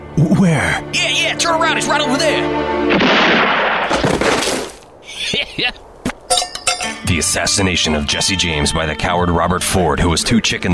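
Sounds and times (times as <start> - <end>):
speech: 0.2 - 4.1, 5.6 - 5.9, 7.1 - 10.7
gunshot: 2.9 - 4.8.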